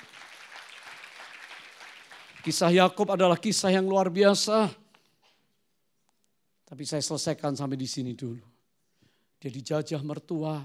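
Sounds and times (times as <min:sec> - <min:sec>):
audience applauding: 0:00.0 - 0:02.8
speech: 0:02.4 - 0:04.8, 0:06.8 - 0:08.6, 0:09.4 - 0:10.6.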